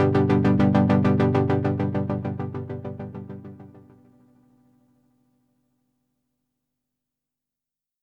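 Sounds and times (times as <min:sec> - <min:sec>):
synthesizer filter modulation: 0:00.0 - 0:03.9.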